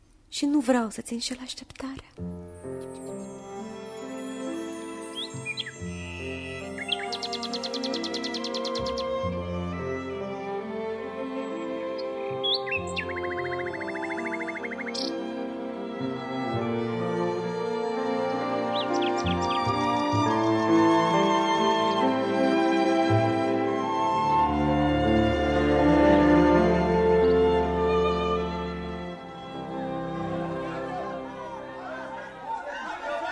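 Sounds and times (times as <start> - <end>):
speech: 0.3 - 2.4
soft sustained instrumental music: 2.0 - 32.6
nightingale singing: 2.5 - 9.5, 10.3 - 15.4, 17.6 - 22.2
laughter: 30.2 - 33.3.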